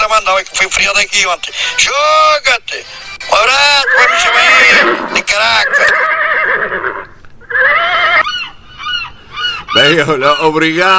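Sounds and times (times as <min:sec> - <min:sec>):
speech: 0:00.3 - 0:08.4, 0:09.7 - 0:10.9
seagulls calling: 0:03.3 - 0:10.9.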